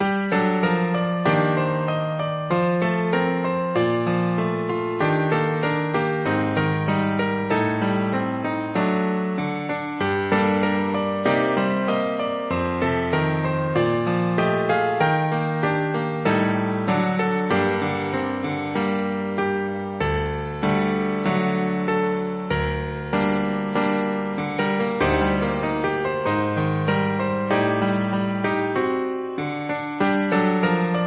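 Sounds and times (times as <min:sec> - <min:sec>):
piano etude: 0:00.0 - 0:31.0.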